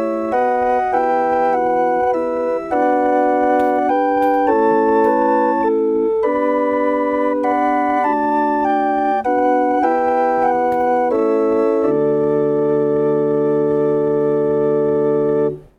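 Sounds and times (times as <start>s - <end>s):
hurdy-gurdy: 0.0s - 15.6s.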